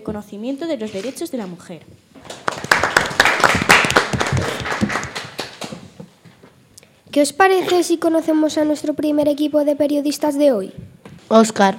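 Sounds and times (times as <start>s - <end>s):
speech: 0.0s - 2.1s, 7.2s - 11.7s
applause: 2.2s - 5.9s.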